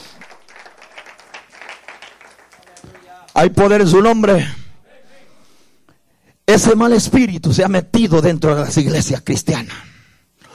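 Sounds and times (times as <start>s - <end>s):
audience applauding: 0.0s - 3.4s
speech: 3.4s - 4.6s, 6.6s - 9.9s.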